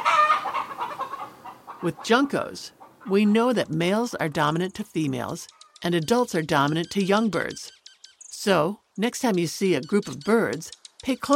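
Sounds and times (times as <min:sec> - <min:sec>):
chicken clucking: 0:00.0 - 0:07.7
speech: 0:01.8 - 0:07.8, 0:08.4 - 0:11.3.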